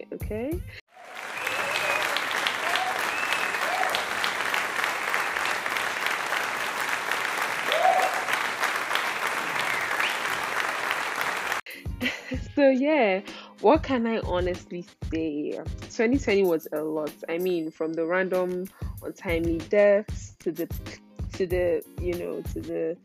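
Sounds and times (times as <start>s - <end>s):
speech: 0.3s - 0.8s, 12.6s - 23.0s
crowd applause: 0.9s - 11.6s.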